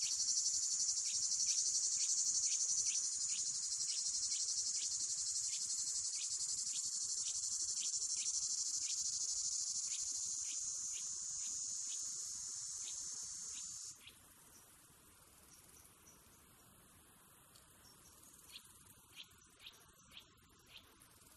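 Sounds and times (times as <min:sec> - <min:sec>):
cicada buzzing in a forest: 0:00.0 - 0:14.0
Tettigonia cantans chirping: 0:00.0 - 0:21.3
nuthatch calling: 0:01.0 - 0:14.2.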